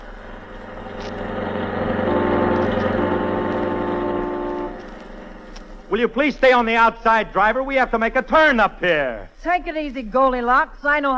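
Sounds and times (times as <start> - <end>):
car engine running: 0.0 - 6.4
speech: 6.0 - 11.1.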